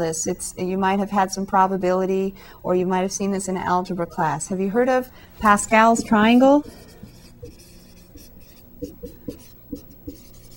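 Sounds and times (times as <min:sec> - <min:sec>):
speech: 0:00.0 - 0:06.9
chalk or marker writing on a board during a maths lecture: 0:05.7 - 0:10.5.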